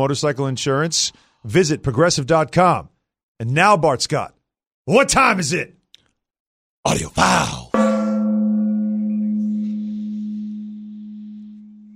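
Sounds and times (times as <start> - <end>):
speech: 0.0 - 5.8, 6.8 - 7.9
gong struck: 7.8 - 11.9.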